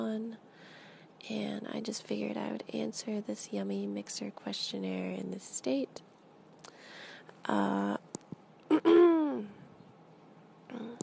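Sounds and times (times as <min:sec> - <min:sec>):
speech: 0:01.2 - 0:06.1, 0:07.4 - 0:08.0
throat clearing: 0:08.7 - 0:09.4.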